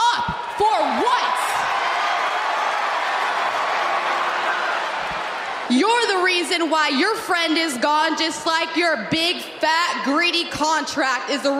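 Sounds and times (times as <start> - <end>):
Monday Night Raw arena crowd roaring: 0.0 - 6.8
cheering and clapping: 0.0 - 6.8
speech: 5.7 - 11.5.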